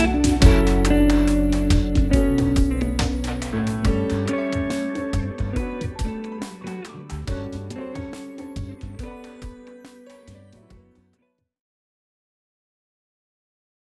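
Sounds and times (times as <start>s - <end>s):
smooth jazz: 0.0s - 10.8s.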